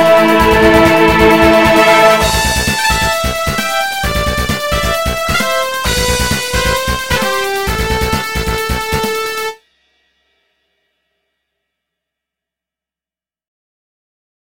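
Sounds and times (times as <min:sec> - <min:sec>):
bass: 0:00.0 - 0:09.5.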